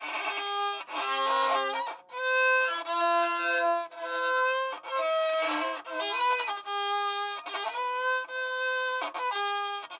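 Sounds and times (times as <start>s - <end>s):
violin practice: 0.0s - 9.9s.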